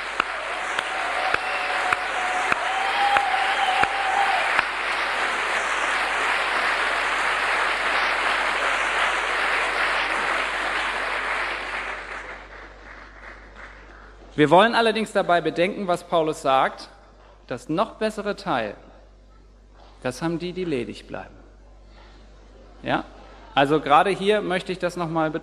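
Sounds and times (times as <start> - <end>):
audience applause: 0.0 - 14.4
sharp loud claps: 0.0 - 14.4
speech: 14.4 - 18.9, 20.0 - 21.4, 22.8 - 25.4.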